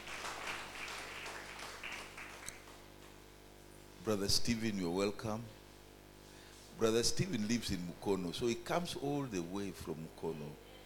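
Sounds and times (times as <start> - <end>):
church congregation clapping in praise during a Sunday service: 0.0 - 3.2
speech: 4.1 - 5.6, 6.8 - 10.7.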